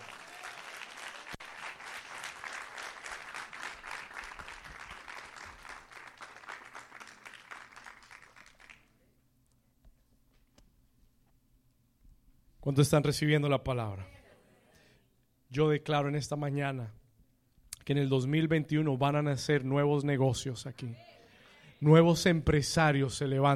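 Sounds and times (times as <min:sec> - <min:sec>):
audience applauding: 0:00.0 - 0:09.0
quiet hum: 0:00.0 - 0:23.4
speech: 0:12.6 - 0:14.2, 0:15.6 - 0:17.0, 0:17.9 - 0:21.1, 0:21.8 - 0:23.5.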